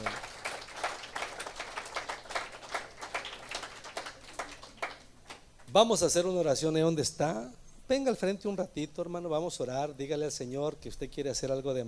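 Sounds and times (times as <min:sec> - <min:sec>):
applause: 0:00.0 - 0:05.7
speech: 0:05.8 - 0:11.8.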